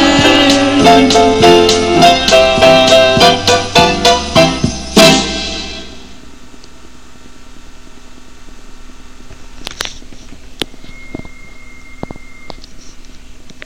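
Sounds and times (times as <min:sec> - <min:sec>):
Christmas song: 0:00.0 - 0:06.2.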